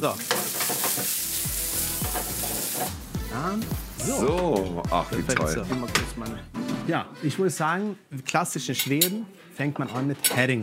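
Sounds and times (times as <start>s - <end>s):
speech: 0.0s - 0.4s, 2.8s - 10.6s
food sizzling in a frying pan: 0.0s - 3.1s
utensils clanking and scraping in a pan: 0.2s - 1.3s, 2.0s - 2.9s, 8.8s - 9.2s.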